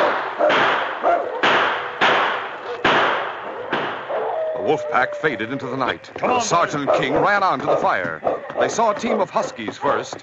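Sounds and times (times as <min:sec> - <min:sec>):
gunshot blasts: 0:00.0 - 0:04.1
speech: 0:04.7 - 0:10.2.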